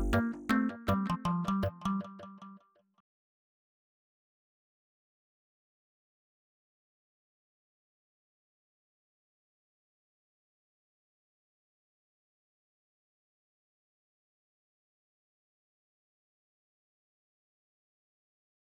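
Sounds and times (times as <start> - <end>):
musical riff: 0.0 - 2.5.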